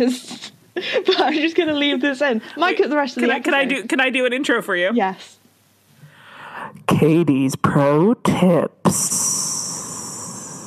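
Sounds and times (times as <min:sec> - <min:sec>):
speech: 0:00.0 - 0:05.4, 0:06.7 - 0:09.4
person hissing like a snake: 0:08.9 - 0:10.6.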